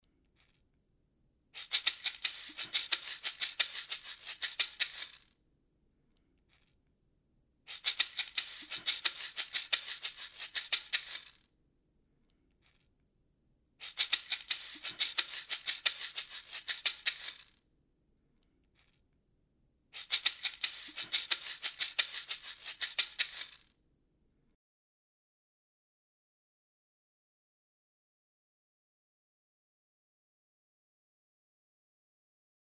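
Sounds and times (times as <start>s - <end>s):
ganzá shaker: 1.6s - 5.3s, 7.7s - 11.4s, 13.8s - 17.6s, 20.0s - 23.7s.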